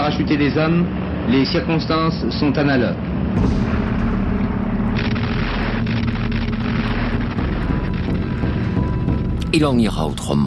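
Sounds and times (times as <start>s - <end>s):
speech: 0.2s - 3.8s, 9.5s - 10.4s
cannon fire: 3.4s - 8.6s.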